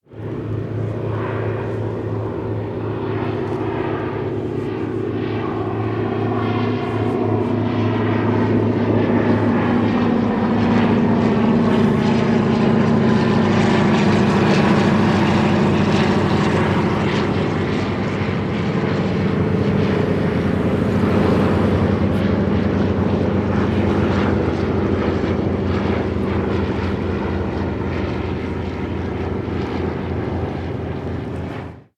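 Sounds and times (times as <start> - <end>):
aircraft engine running: 0.0 - 31.9.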